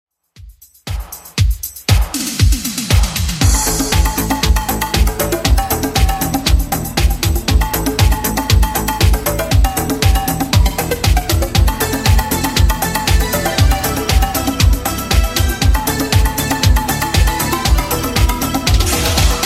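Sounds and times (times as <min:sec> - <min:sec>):
80s style music at 118 bpm: 0:00.4 - 0:19.4.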